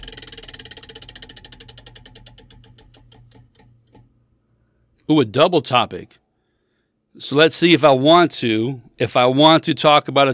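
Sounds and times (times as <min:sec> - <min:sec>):
topic wheel clicker striking the pegs: 0:00.0 - 0:04.1
faint low hum: 0:00.0 - 0:04.8
speech: 0:05.1 - 0:06.2, 0:07.2 - 0:10.3.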